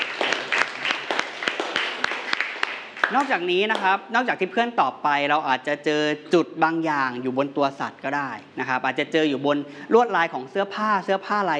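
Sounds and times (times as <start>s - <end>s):
group applauding: 0.0s - 3.9s
speech: 3.1s - 11.5s.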